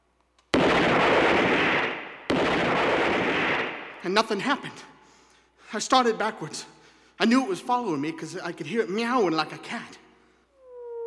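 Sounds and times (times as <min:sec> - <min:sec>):
revolver gunshot: 0:00.6 - 0:04.1
speech: 0:04.0 - 0:04.9, 0:05.7 - 0:10.0.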